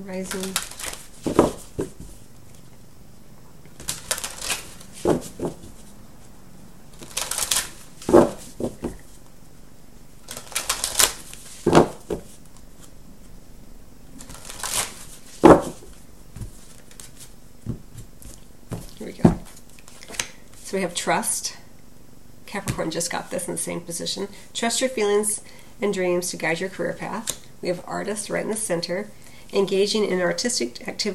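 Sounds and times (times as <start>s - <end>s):
speech: 0.0s - 1.5s, 20.8s - 21.6s, 22.5s - 31.1s
Life Purpose oracle deck cards shuffled and drawn: 0.2s - 2.7s, 3.7s - 6.3s, 7.0s - 9.3s, 10.2s - 13.0s, 14.2s - 20.6s.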